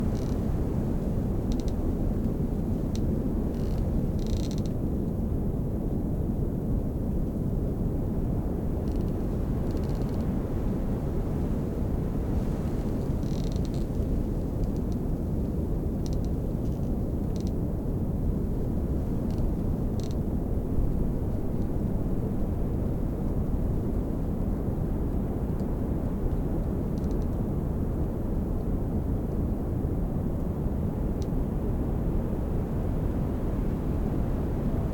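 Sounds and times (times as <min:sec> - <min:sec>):
Bora wind: 0:00.0 - 0:34.9
tree branches squeaking in the wind: 0:00.1 - 0:00.5.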